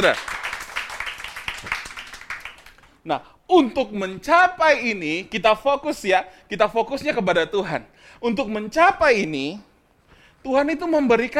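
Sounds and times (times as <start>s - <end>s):
speech: 0.0s - 0.4s, 3.0s - 9.7s, 10.4s - 11.3s
audience applause: 0.0s - 3.0s.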